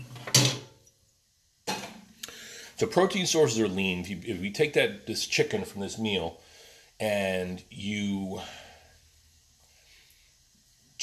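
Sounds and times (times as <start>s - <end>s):
dishes clattering into a dishwasher rack: 0.0s - 0.7s, 1.7s - 2.0s
speech: 2.8s - 8.6s.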